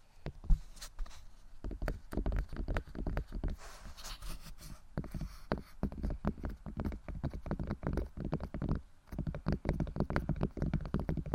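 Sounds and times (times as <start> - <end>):
tapping and knocking: 1.6 - 3.5, 5.0 - 11.3.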